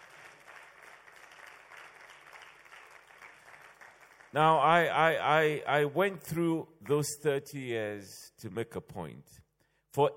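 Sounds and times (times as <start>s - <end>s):
audience clapping: 0.0s - 4.9s
speech: 4.3s - 9.4s, 10.0s - 10.1s.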